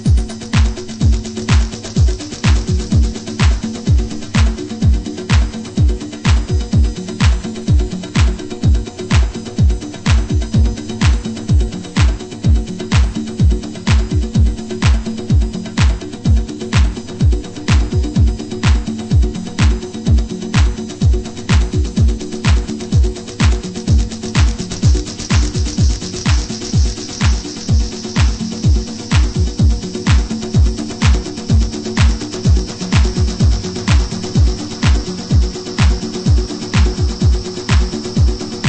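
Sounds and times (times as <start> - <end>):
Afro tribal house drums: 0.0 - 38.6.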